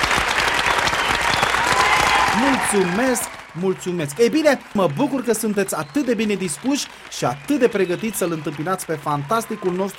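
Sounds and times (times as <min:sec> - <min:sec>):
studio audience applause at a Romanian television entertainment show: 0:00.0 - 0:09.9
speech: 0:02.4 - 0:09.9.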